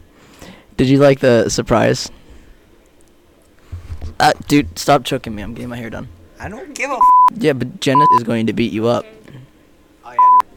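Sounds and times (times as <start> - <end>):
brief snatch of speech: 0.8 - 2.1, 4.2 - 9.4, 10.0 - 10.4
censor bleep tone: 7.0 - 7.3, 7.9 - 8.2, 10.2 - 10.5.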